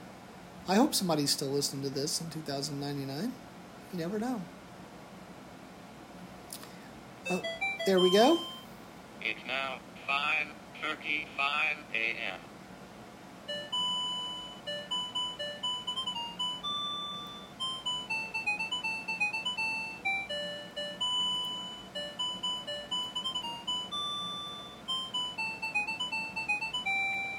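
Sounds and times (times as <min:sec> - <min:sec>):
speech: 0:00.7 - 0:04.6, 0:07.3 - 0:08.5, 0:09.2 - 0:12.5
alarm clock alarm going off: 0:07.3 - 0:08.6, 0:13.5 - 0:27.3.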